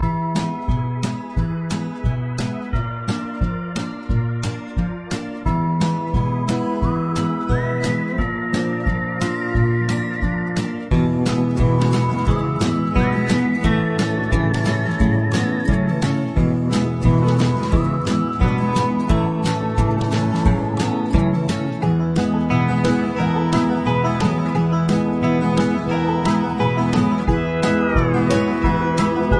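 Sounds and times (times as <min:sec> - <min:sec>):
Halloween in-game music: 0:00.0 - 0:29.3.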